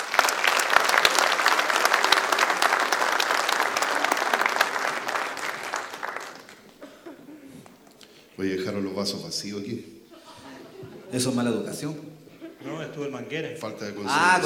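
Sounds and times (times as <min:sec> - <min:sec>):
audience applause: 0:00.0 - 0:07.0
laughter: 0:06.5 - 0:07.8, 0:10.1 - 0:13.1
speech: 0:08.4 - 0:10.0, 0:11.1 - 0:14.4.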